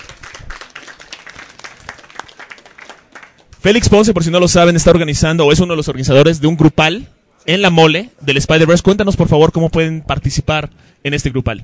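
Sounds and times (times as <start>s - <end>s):
audience applause at a comic-themed gathering: 0.0s - 3.6s
speech: 3.6s - 11.6s.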